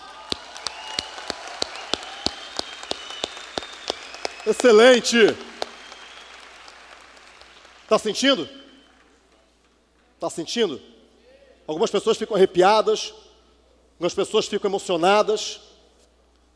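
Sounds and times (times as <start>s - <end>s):
audience clapping in unison: 0.0s - 9.5s
speech: 4.4s - 5.5s, 7.9s - 8.6s, 10.2s - 10.9s, 11.7s - 13.2s, 14.0s - 15.7s.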